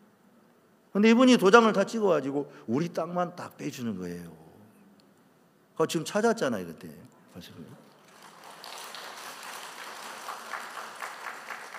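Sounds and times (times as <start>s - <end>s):
speech: 1.0s - 4.4s, 5.8s - 7.8s
audience applause: 7.9s - 11.7s.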